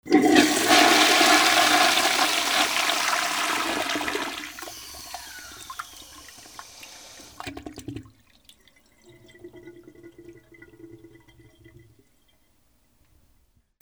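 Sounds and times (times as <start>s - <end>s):
bathroom ambience: 0.0s - 13.6s.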